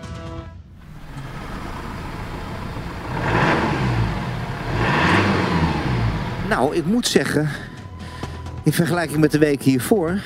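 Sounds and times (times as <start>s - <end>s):
diesel car engine rumbling and revving: 0.7s - 7.7s
speech: 6.5s - 7.7s, 8.7s - 10.2s.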